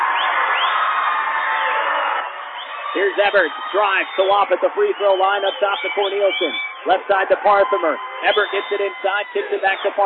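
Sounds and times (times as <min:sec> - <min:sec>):
basketball crowd cheering: 0:00.0 - 0:10.0
whoops and whistles: 0:00.1 - 0:01.0, 0:02.6 - 0:06.9, 0:07.6 - 0:10.0
speech: 0:02.9 - 0:10.0.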